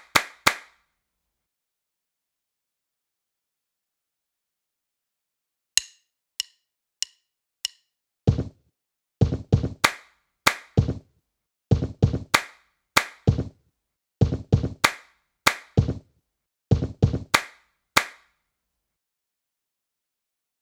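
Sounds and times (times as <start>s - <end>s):
body percussion: 7.7s - 8.6s, 9.2s - 11.0s, 11.7s - 13.6s, 14.2s - 16.0s, 16.7s - 18.2s.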